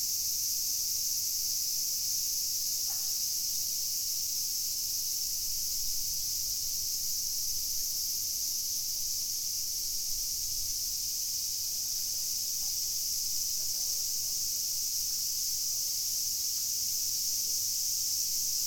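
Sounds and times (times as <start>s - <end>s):
cicadas buzzing in a dense high-pitched chorus: 0.1s - 18.6s.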